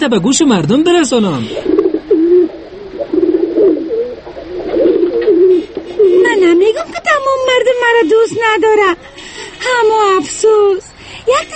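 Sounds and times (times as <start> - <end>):
speech: 0.0 - 1.7, 7.9 - 11.5
white pigeon cooing: 1.4 - 7.0.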